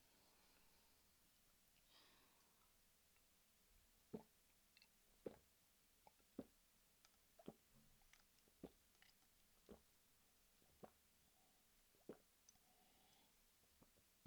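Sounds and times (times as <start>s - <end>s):
burping: 4.1s - 5.5s
person drinking semen from a mug: 4.1s - 10.0s, 10.6s - 14.0s.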